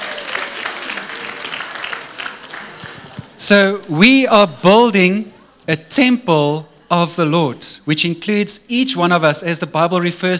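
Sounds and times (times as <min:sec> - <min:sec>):
audience applauding: 0:00.0 - 0:04.0
speech: 0:03.4 - 0:10.3.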